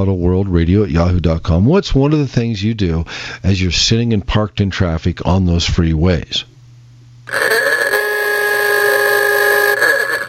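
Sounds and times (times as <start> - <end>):
speech: 0.0 - 6.5, 7.3 - 7.8
aoogah horn honk: 7.3 - 10.2.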